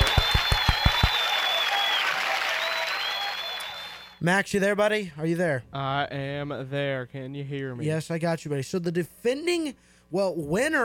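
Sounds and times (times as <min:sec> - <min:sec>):
audience round of applause: 0:00.0 - 0:04.2
speech: 0:04.2 - 0:10.8.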